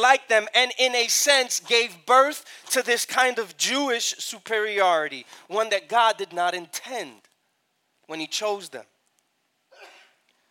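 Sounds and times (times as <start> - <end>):
speech: 0.0 - 7.3, 8.1 - 8.9
sneeze: 9.7 - 10.2.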